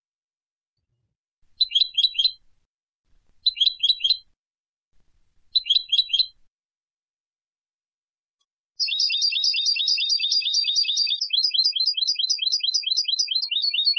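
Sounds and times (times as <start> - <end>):
European goldfinch twittering: 1.6 - 2.4, 3.4 - 4.3, 5.5 - 6.4, 8.8 - 13.9.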